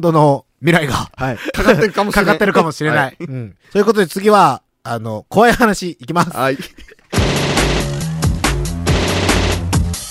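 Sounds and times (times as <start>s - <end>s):
speech: 0.0s - 7.5s
laughter: 1.3s - 2.6s, 6.1s - 7.1s
machine gun fire sound effect: 7.1s - 10.0s.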